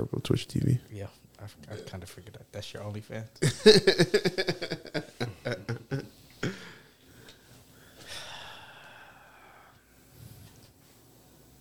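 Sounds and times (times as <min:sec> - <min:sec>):
speech: 0:00.0 - 0:05.6
laughter: 0:03.4 - 0:06.1
man imitating a rapper's breathing from a diss track: 0:07.9 - 0:09.7.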